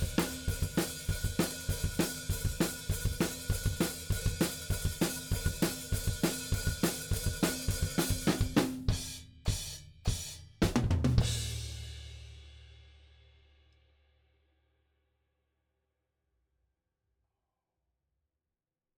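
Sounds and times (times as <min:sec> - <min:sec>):
drums: 0:00.0 - 0:13.7.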